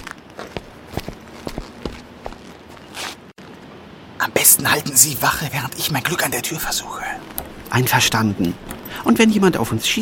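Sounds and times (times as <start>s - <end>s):
footsteps walking: 0.0s - 3.5s, 7.2s - 7.8s
speech: 4.5s - 10.0s.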